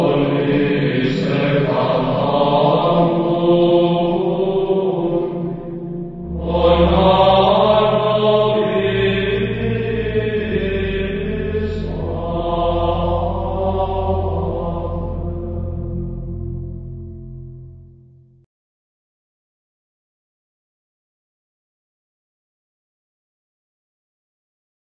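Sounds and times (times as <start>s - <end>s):
hymn singing: 0.0s - 17.8s.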